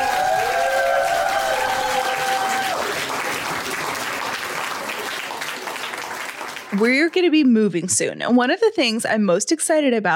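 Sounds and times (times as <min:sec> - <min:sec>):
audience applause at a comedy club: 0:00.0 - 0:07.1
speech: 0:06.8 - 0:10.1.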